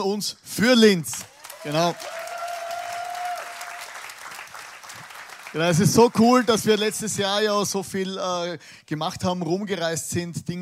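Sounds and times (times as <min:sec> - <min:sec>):
speech: 0:00.0 - 0:02.2, 0:05.5 - 0:10.5
audience applause: 0:01.2 - 0:07.0.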